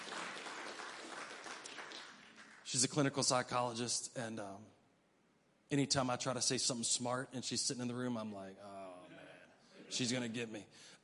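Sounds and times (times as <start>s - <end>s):
audience clapping: 0.0s - 3.1s
speech: 2.7s - 4.8s, 5.7s - 9.1s, 9.9s - 11.0s.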